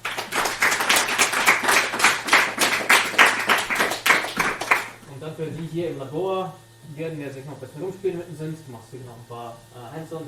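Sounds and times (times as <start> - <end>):
audience applause: 0.0 - 5.0
speech: 5.4 - 10.2.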